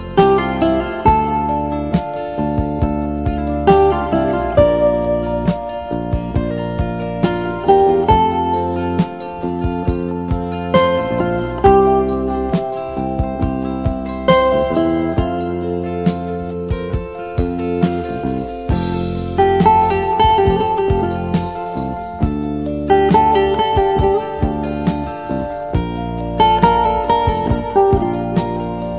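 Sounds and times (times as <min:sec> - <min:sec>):
instrumental music: 0:00.0 - 0:28.9.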